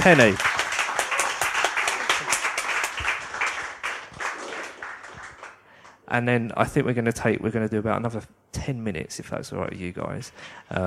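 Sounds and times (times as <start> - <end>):
speech: 0.0 - 0.5, 6.1 - 10.8
audience applause: 0.0 - 5.7.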